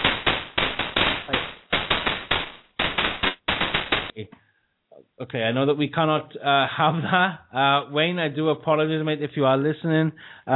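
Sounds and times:
fireworks going off: 0.0s - 4.2s
speech: 4.2s - 4.4s, 5.2s - 10.5s.

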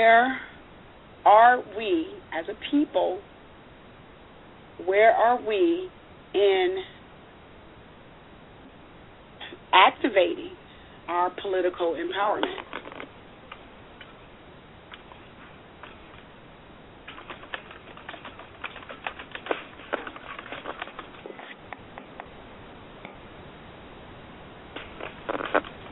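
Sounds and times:
speech: 0.0s - 0.5s, 1.2s - 3.3s, 4.8s - 7.0s, 9.7s - 12.8s
typing on a keyboard: 17.1s - 21.2s.

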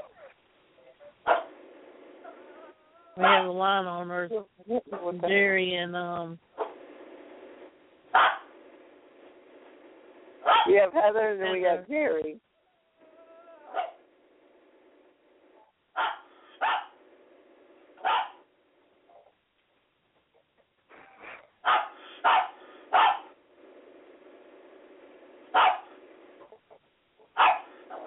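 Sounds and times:
dog barking: 1.2s - 1.6s, 2.2s - 3.5s, 8.1s - 8.5s, 10.4s - 10.7s, 13.7s - 14.0s, 16.0s - 17.0s, 18.0s - 18.4s, 21.6s - 23.4s, 25.5s - 26.0s, 27.3s - 28.0s
speech: 3.2s - 6.5s, 10.7s - 12.5s.

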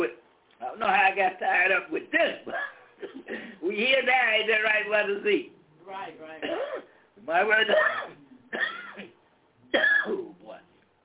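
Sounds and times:
speech: 0.8s - 2.7s, 3.3s - 8.7s, 9.7s - 10.4s
coughing after choking: 2.1s - 3.6s, 6.4s - 7.0s, 7.6s - 10.4s.

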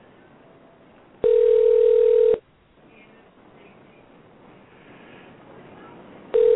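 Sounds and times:
faint phone line hiss: 0.0s - 6.4s
phone line ring tone: 1.2s - 2.4s, 6.3s - 6.5s.

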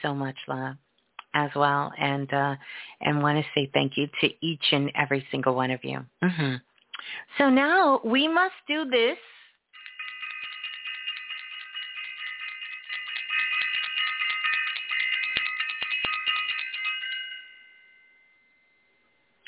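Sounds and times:
speech: 0.0s - 9.4s
bright high-pitched bell ringing: 9.8s - 19.1s.

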